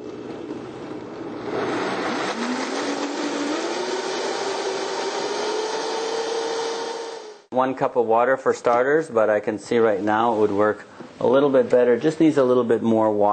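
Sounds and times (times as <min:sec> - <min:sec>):
Vitamix blender starting slowly: 0:01.3 - 0:07.4
speech: 0:07.6 - 0:13.3.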